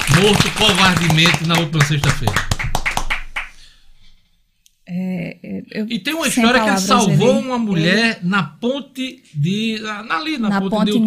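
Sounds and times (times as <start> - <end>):
applause: 0.0 - 3.6
speech: 0.2 - 2.6, 4.9 - 11.0.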